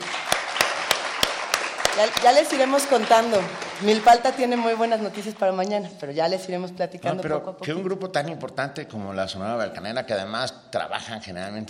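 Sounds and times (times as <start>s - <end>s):
sharp rhythmic claps: 0.0s - 5.4s
dense continuous crowd noise: 0.0s - 5.9s
speech: 2.0s - 11.6s.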